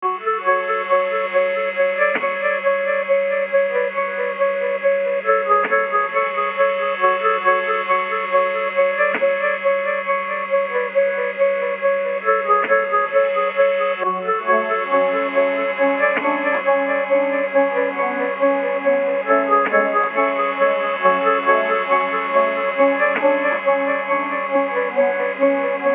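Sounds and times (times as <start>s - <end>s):
music samples in D flat minor at 137 bpm: 0.0s - 25.9s.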